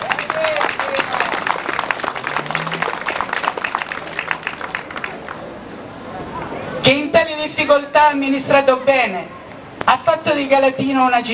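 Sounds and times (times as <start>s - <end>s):
audience applause: 0.0s - 5.5s
speech: 7.7s - 11.3s.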